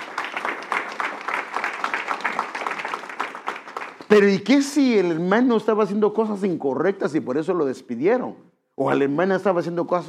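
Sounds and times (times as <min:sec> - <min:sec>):
audience applause: 0:00.0 - 0:04.7
speech: 0:04.1 - 0:10.0.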